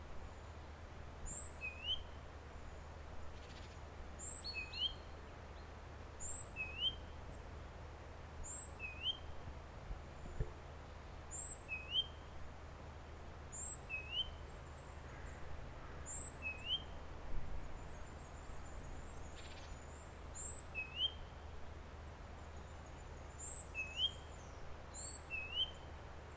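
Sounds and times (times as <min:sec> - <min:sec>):
background hiss: 0:00.0 - 0:26.3
great tit rising whistled calls: 0:01.3 - 0:02.1, 0:03.4 - 0:05.1, 0:06.2 - 0:07.0, 0:08.4 - 0:09.3, 0:11.3 - 0:12.2, 0:13.5 - 0:14.4, 0:16.1 - 0:16.9, 0:20.4 - 0:21.3, 0:23.4 - 0:25.9.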